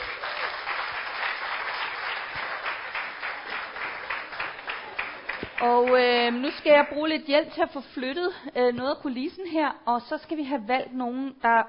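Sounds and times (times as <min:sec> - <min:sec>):
crowd clapping: 0:00.0 - 0:07.0
speech: 0:05.6 - 0:11.6.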